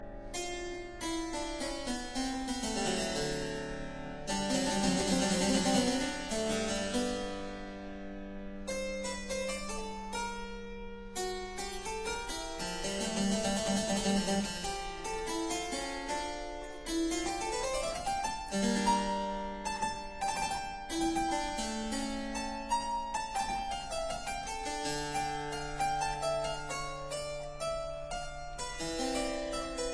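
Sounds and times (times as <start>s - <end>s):
prelude in D minor: 0.0s - 29.9s.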